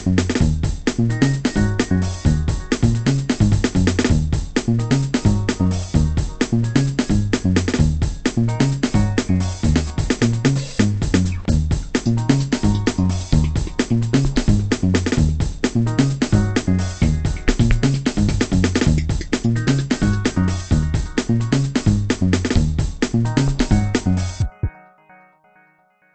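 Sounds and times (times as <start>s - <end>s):
Afro heartbeat rhythm: 0.0s - 24.7s.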